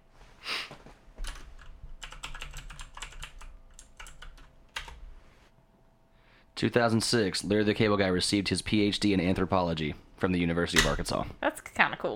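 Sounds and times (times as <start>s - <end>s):
two-handed typing on a computer keyboard to search Google: 1.2s - 5.0s
speech: 6.6s - 12.1s.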